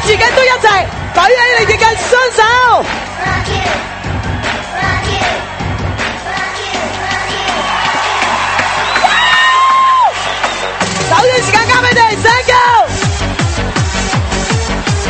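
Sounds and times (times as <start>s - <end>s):
crowd clapping and cheering: 0.0s - 15.0s
speech: 0.1s - 5.5s
whistling whoops: 7.5s - 10.8s.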